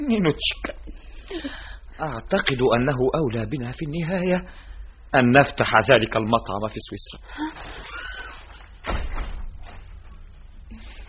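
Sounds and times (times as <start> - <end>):
hiss: 0.0 - 11.0
speech: 0.1 - 8.0
door bumping open as someone enters: 8.8 - 10.0.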